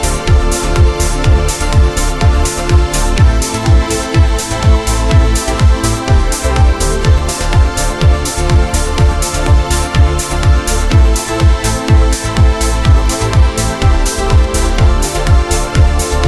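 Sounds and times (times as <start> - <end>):
dramatic progressive synthesizer chords: 0.0 - 16.2
progressive trance music: 0.0 - 16.2.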